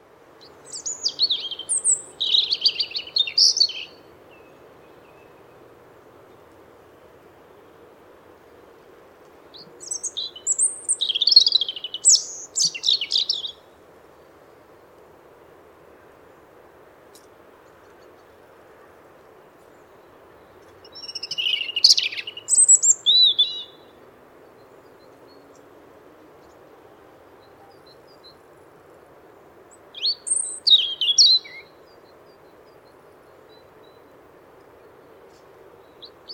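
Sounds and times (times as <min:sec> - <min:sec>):
European robin singing: 0:00.4 - 0:05.6, 0:09.5 - 0:13.8, 0:19.7 - 0:25.8, 0:29.7 - 0:34.2.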